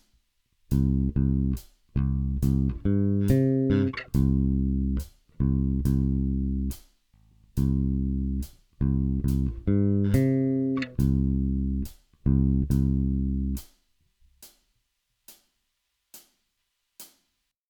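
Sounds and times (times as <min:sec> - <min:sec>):
bass fills: 0:00.7 - 0:13.6.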